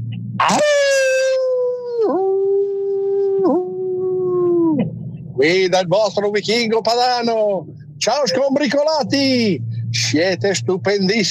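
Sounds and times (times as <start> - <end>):
man imitating a wolf-like howl: 0.4 - 4.8
speech: 5.4 - 11.2.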